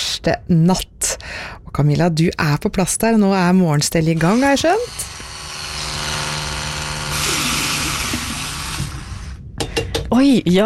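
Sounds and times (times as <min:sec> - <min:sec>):
speech: 0:00.2 - 0:01.1, 0:01.7 - 0:05.3, 0:10.1 - 0:10.6
electric toothbrush buzzing: 0:04.2 - 0:09.4.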